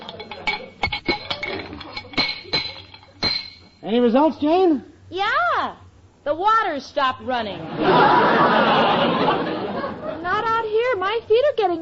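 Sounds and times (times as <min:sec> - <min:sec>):
wrench tightening loose metal pipes: 0:00.0 - 0:03.8
speech: 0:03.9 - 0:09.4, 0:11.0 - 0:11.8
laughter: 0:07.6 - 0:10.4.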